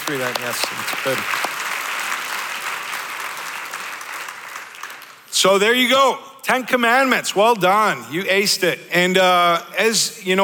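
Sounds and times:
audience clapping: 0:00.0 - 0:05.4
speech: 0:00.1 - 0:01.5, 0:05.4 - 0:10.4.

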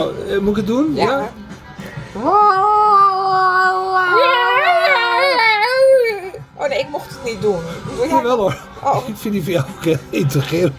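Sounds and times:
speech: 0:00.0 - 0:01.4, 0:02.2 - 0:02.8, 0:06.7 - 0:10.7
voice imitating cats fighting at night: 0:02.2 - 0:06.3.

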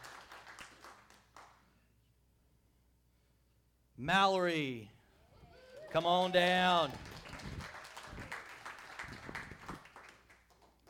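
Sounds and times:
audience applauding a prize winner at a drawing: 0:00.0 - 0:01.2, 0:05.5 - 0:10.8
speech: 0:04.0 - 0:05.0, 0:05.9 - 0:07.1.

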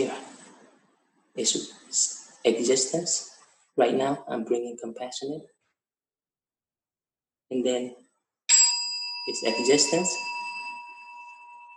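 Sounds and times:
speech: 0:01.4 - 0:05.6, 0:07.5 - 0:08.0, 0:09.3 - 0:10.4
meditation bell ringing: 0:08.5 - 0:11.7.

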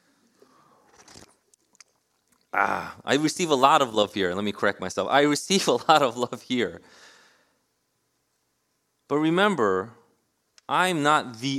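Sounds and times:
person sipping water: 0:00.2 - 0:03.0
speech: 0:02.5 - 0:07.1, 0:09.1 - 0:10.0, 0:10.7 - 0:11.5.

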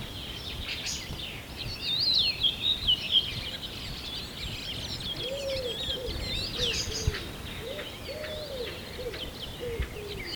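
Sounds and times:
birds chirping and trilling: 0:00.0 - 0:10.3
soft rounded low bird coos: 0:05.2 - 0:10.3.

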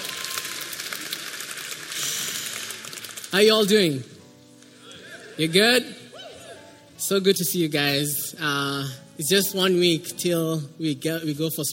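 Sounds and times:
audience clapping: 0:00.0 - 0:03.7
speech: 0:03.3 - 0:04.1, 0:05.4 - 0:06.0, 0:07.1 - 0:11.7.

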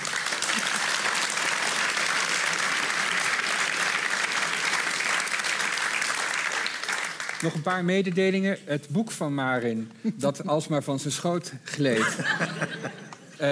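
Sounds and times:
audience applause: 0:00.0 - 0:07.7
speech: 0:07.4 - 0:13.5
laughter: 0:11.9 - 0:13.5.

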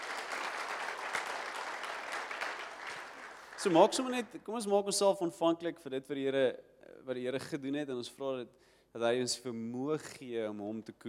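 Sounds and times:
audience applause: 0:00.0 - 0:04.2
speech: 0:03.6 - 0:11.0.

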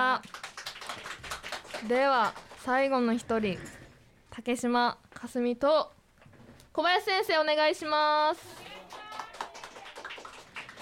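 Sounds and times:
speech: 0:00.0 - 0:00.4, 0:01.8 - 0:06.0, 0:06.8 - 0:08.6
applause: 0:00.1 - 0:02.8, 0:08.4 - 0:10.7.

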